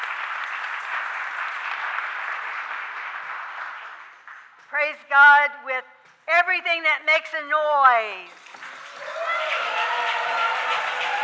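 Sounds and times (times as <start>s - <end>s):
audience clapping hands: 0.0s - 4.9s, 8.3s - 11.2s
speech: 4.7s - 8.4s.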